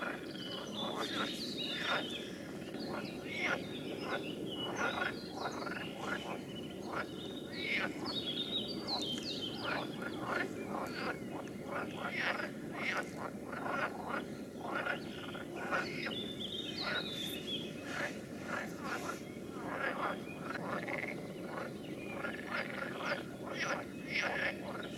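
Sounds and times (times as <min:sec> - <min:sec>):
frog chorus of rasping calls: 0:00.0 - 0:24.9.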